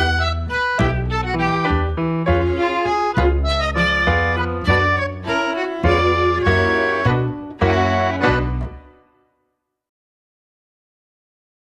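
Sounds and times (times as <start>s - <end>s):
tango music: 0.0s - 9.2s.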